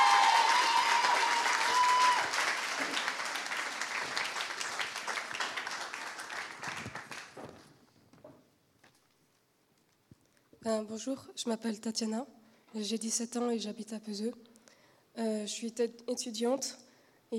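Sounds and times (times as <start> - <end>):
audience applause: 0.0 - 7.6
speech: 10.7 - 14.5, 15.2 - 17.3.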